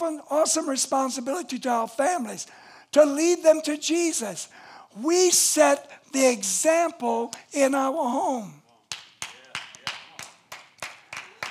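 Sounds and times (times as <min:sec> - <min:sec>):
speech: 0:00.0 - 0:08.6
few people clapping: 0:08.8 - 0:11.4.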